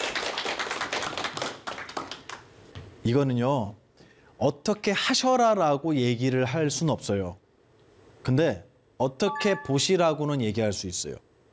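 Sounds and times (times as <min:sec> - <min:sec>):
audience applause: 0:00.0 - 0:02.4
speech: 0:03.1 - 0:03.8, 0:04.4 - 0:07.4, 0:08.2 - 0:11.2.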